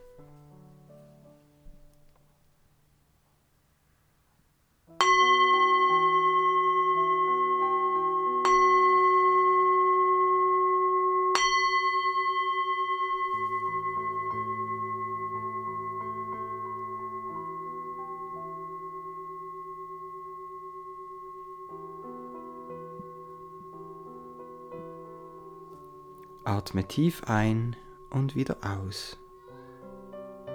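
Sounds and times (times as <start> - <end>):
gong being struck: 5.0 - 30.5
speech: 26.6 - 29.2.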